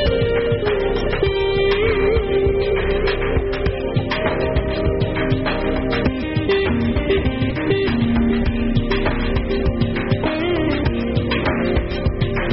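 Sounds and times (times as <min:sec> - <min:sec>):
guitar: 0:00.0 - 0:12.5
synth background music: 0:00.0 - 0:12.5.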